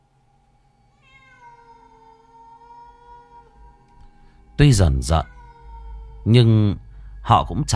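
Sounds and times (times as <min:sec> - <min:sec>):
cat meowing mournfully at night in the countryside: 0:00.9 - 0:07.2
faint low rumble: 0:01.9 - 0:07.7
speech: 0:04.6 - 0:05.4, 0:06.2 - 0:07.7.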